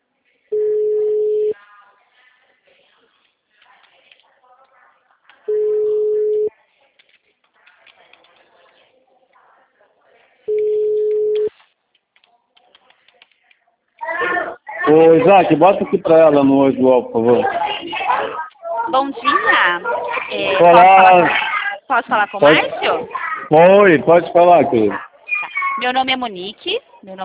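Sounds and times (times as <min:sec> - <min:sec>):
outgoing telephone call's ringback tone: 0:00.5 - 0:01.6, 0:05.5 - 0:06.5, 0:10.5 - 0:11.5
speech: 0:14.9 - 0:17.6, 0:18.9 - 0:25.0, 0:25.8 - 0:27.2.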